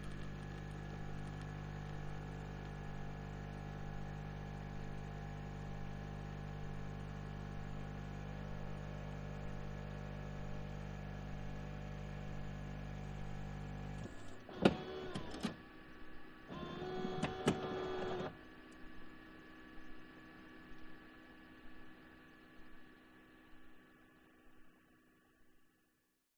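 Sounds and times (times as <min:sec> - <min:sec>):
coffee machine making cappuccino: 0:00.0 - 0:15.6, 0:16.5 - 0:18.4.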